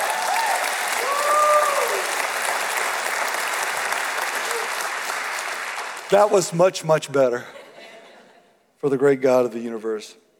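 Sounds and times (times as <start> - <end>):
audience applause: 0.0 - 6.6
speech: 6.1 - 7.6, 8.8 - 10.2.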